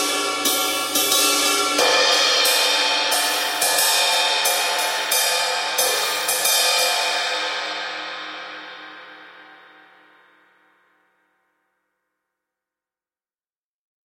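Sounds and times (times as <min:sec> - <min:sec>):
studio cymbals: 0:00.0 - 0:10.5.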